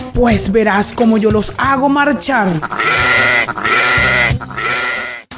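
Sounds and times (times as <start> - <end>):
speech: 0.2 - 3.8
young goats bleating: 2.6 - 5.3.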